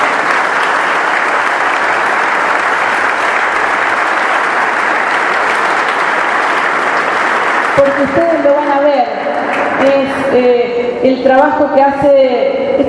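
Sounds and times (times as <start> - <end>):
large audience applause: 0.0 - 8.6, 9.3 - 9.8
speech: 7.8 - 12.8.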